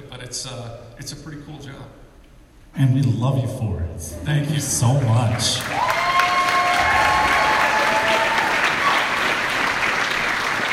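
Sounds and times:
speech: 0.1 - 2.0, 2.8 - 6.0
crowd applause: 4.8 - 10.7.

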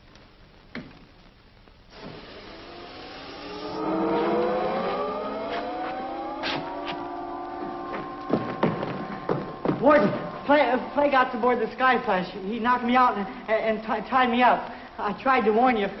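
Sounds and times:
rocket ship taking off: 2.8 - 11.8
speech: 9.8 - 15.9.

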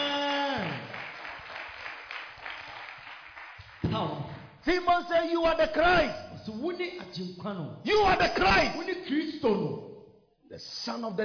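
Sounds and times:
congregation clapping in a church service: 0.0 - 4.6
speech: 3.9 - 9.9, 10.5 - 11.2.

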